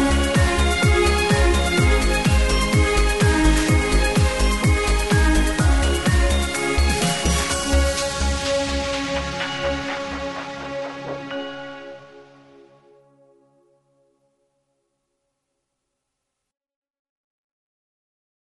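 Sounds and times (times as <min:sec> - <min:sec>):
square dance music: 0:00.0 - 0:11.3.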